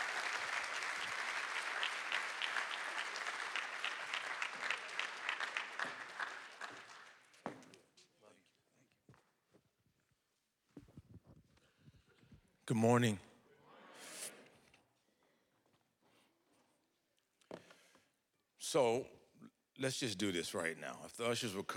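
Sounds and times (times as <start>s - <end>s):
audience applauding: 0.0s - 7.4s
speech: 12.7s - 13.3s, 18.8s - 19.2s, 19.8s - 21.7s.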